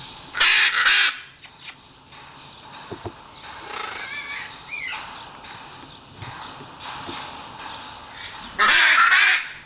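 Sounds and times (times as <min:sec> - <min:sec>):
Great green macaw Ara ambigua harsh squawks and honking calls: 0:00.4 - 0:01.7, 0:03.6 - 0:05.0, 0:08.2 - 0:09.6.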